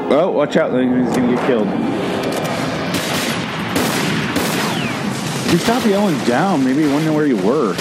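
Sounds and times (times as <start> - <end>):
speech: 0.1 - 1.9, 5.5 - 7.7
video game gunfire: 2.9 - 7.7.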